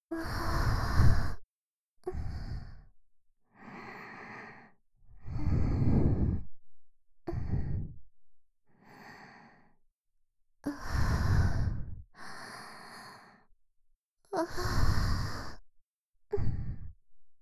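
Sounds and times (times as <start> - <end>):
sweet breathing loop: 0.1 - 1.4, 3.6 - 6.6, 7.3 - 8.0, 8.7 - 9.7, 10.7 - 13.5, 14.5 - 15.6.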